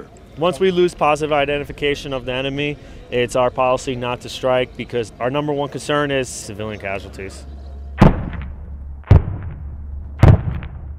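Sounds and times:
speech: 0.4 - 7.5
mortar rounds fired into trees: 8.0 - 10.9.

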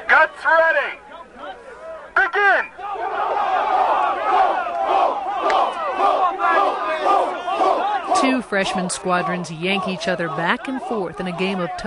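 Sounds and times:
speech: 0.2 - 1.0, 8.5 - 11.8
cadets screaming battle cries: 2.8 - 11.8.

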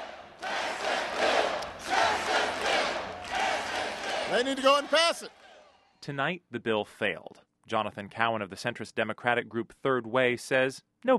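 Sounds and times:
crowd chanting in unison: 0.0 - 5.9
speech: 4.3 - 5.4, 6.0 - 11.1.

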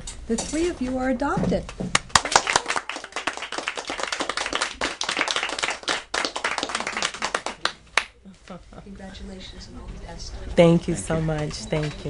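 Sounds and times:
speech: 0.3 - 2.0, 8.5 - 12.0
people clapping at adoption ceremony: 1.9 - 8.2.

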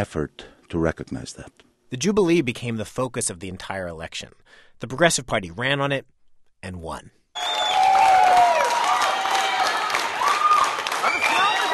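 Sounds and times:
speech: 0.0 - 7.5
crowd clapping in unison at election party: 7.4 - 11.7.

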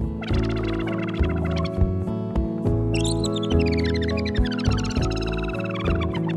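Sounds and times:
mellow instrumental song with sustained chords and soft bass: 0.0 - 6.3
synthesizer chirps imitating muskrat squeaking: 0.1 - 1.8, 3.0 - 6.3.

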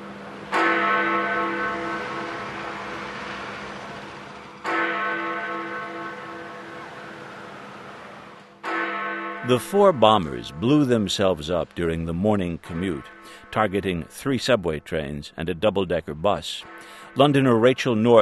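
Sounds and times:
deep clock tower bell tolling: 0.0 - 7.8, 8.6 - 14.2
speech: 9.5 - 18.1.

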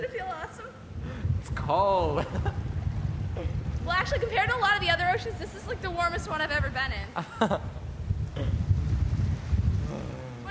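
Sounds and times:
strong wind at an ocean beach buffeting the microphone: 0.0 - 10.5
speech: 1.7 - 2.6, 3.9 - 7.8
brief vocal sounds: 9.8 - 10.5.

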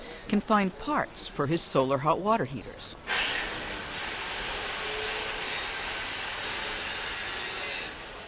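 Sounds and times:
speech: 0.3 - 3.0
metalworking street grinding and sawing: 3.1 - 8.2.

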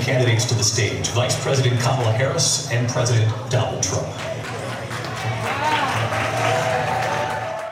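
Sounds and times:
speech: 0.1 - 4.4
watch party crowd cheering: 4.2 - 7.6.

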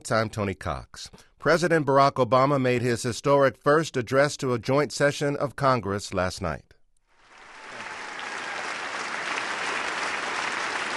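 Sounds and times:
speech: 0.0 - 6.7
long applause and standing ovation: 7.2 - 10.9.

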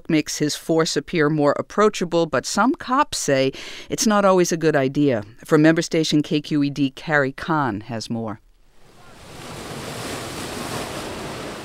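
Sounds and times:
speech: 0.1 - 8.4
small ocean waves breaking on beach: 8.7 - 11.6.

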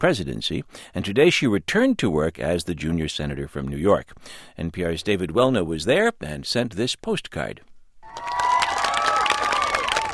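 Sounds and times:
speech: 0.0 - 8.3
interns and Senate staffers clapping at the Capitol: 8.0 - 10.1.

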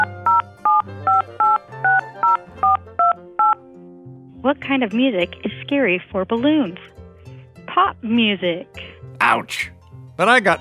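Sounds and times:
telephone number being dialed with touch tones: 0.0 - 3.6
speech: 4.6 - 6.9, 7.8 - 10.5.

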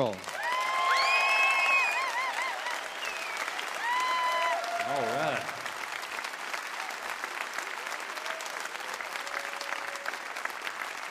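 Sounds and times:
audience applause at a live radio music show: 0.0 - 11.0
shrill whistles: 0.8 - 4.6.

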